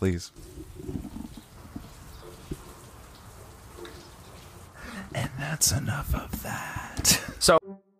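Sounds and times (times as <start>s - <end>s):
speech: 0.0s - 0.6s, 5.5s - 7.6s
rain outside an open barn door: 0.0s - 6.2s.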